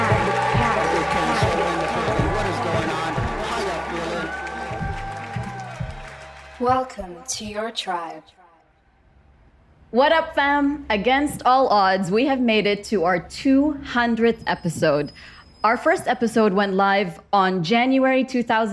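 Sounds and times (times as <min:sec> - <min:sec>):
audience applauding and cheering to welcome the hosts of The Dikkat Show: 0:00.0 - 0:07.8
speech: 0:06.6 - 0:08.4, 0:09.9 - 0:18.7.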